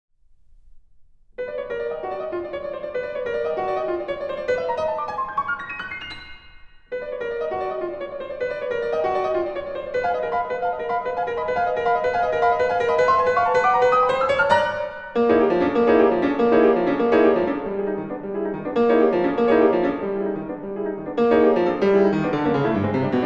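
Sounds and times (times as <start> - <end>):
solo piano bagatelle: 0.5 - 23.2.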